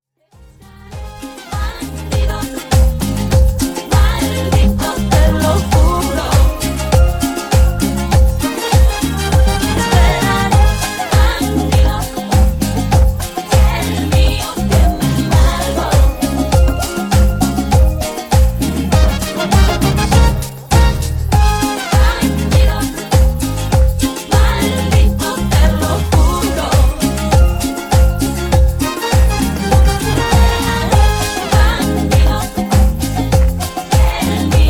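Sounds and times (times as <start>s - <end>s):
cumbia remix music: 0.3s - 34.6s.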